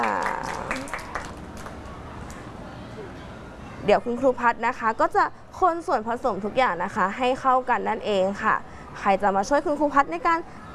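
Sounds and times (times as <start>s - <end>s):
scattered handclaps from a small group: 0.0s - 2.5s
speech: 3.9s - 10.6s.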